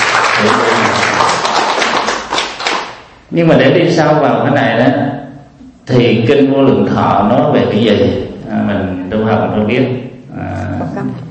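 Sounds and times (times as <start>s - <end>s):
audience applause: 0.0s - 3.0s
speech: 0.4s - 0.6s, 3.3s - 5.3s, 5.9s - 10.0s.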